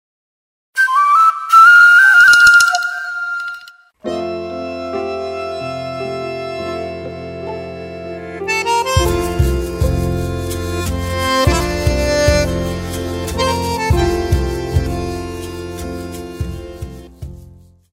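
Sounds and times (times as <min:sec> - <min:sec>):
instrumental music: 0:00.8 - 0:17.9.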